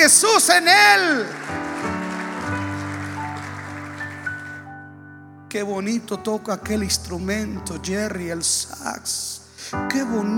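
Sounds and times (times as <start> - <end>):
speech: 0.0 - 1.7, 5.5 - 10.3
audience applause: 0.0 - 4.9
keyboard chords: 1.3 - 10.3.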